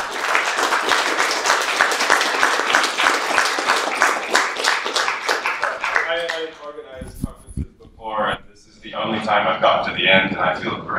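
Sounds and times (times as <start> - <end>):
audience round of applause: 0.0 - 6.6
speech: 9.3 - 10.9.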